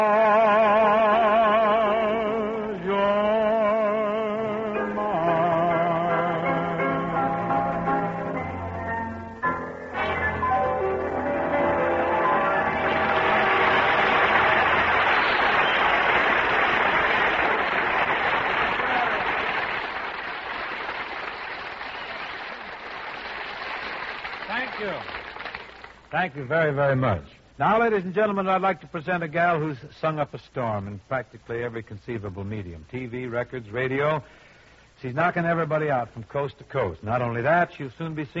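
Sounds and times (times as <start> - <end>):
music: 0.0 - 16.0
crowd applause: 11.7 - 26.1
speech: 26.2 - 34.4, 35.0 - 38.3.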